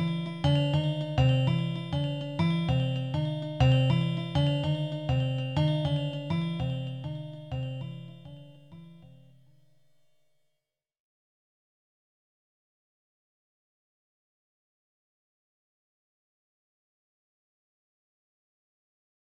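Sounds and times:
Fibonacci fractal tone scape music: 0:00.0 - 0:09.4.

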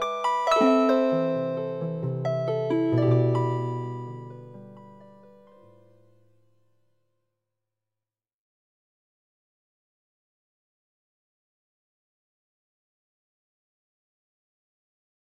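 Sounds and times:
harp chords in just intonation: 0:00.0 - 0:05.7.

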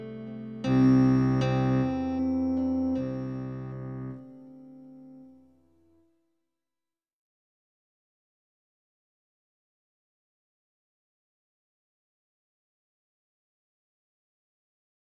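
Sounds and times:
contrabass solo in six eight: 0:00.6 - 0:04.2.

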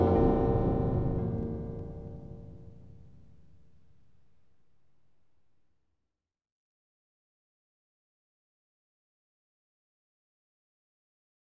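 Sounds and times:
tubular bells playing eleven limit pentatonic scale: 0:00.0 - 0:03.2.

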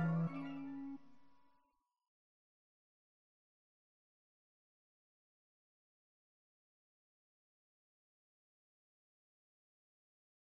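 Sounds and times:
Hawaiian musical scale: 0:00.0 - 0:01.0.

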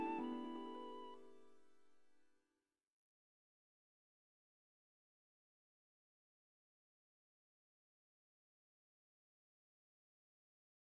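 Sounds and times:
shakuhachi: 0:00.0 - 0:01.4.

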